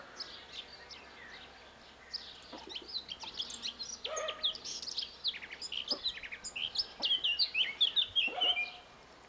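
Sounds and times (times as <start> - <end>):
Eurasian blackcap singing: 2.1 - 8.9.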